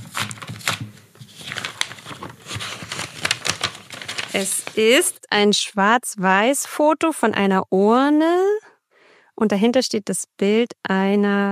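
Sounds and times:
sealed envelope holding a photograph torn open by hand: 0:00.0 - 0:05.2
speech: 0:04.4 - 0:08.7, 0:09.4 - 0:11.4.

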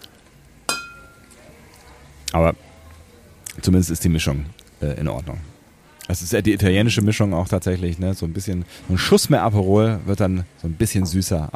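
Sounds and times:
glasses clinking in a toast: 0:00.7 - 0:01.4
speech: 0:02.3 - 0:02.7, 0:03.6 - 0:05.5, 0:06.1 - 0:11.5.

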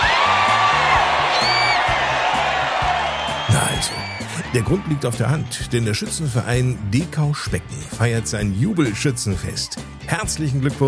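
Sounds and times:
crowd cheering and whooping: 0:00.0 - 0:05.8
speech: 0:04.5 - 0:10.8.

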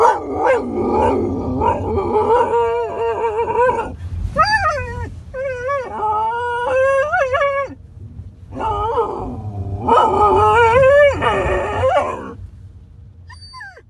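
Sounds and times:
dog yelping barks: 0:00.0 - 0:01.9
dog howling and whining: 0:00.0 - 0:07.8, 0:08.5 - 0:12.4, 0:13.3 - 0:13.8.

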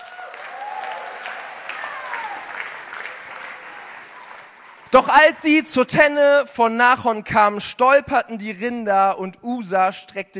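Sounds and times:
applause: 0:00.0 - 0:05.0
speech: 0:04.9 - 0:10.3.

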